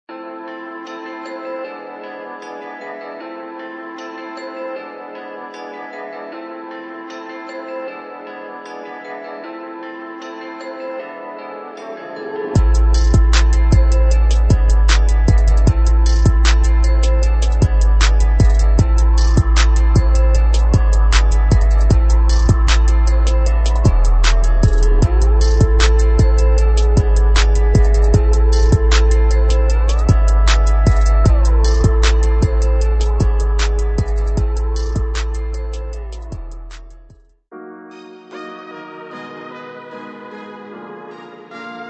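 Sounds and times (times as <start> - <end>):
trap drum kit: 12.6 - 37.3.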